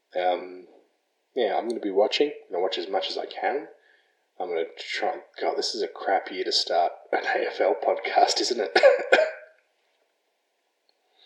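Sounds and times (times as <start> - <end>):
speech: 0.1 - 0.7, 1.4 - 3.8, 4.4 - 9.4
single short husky cough: 8.7 - 9.5.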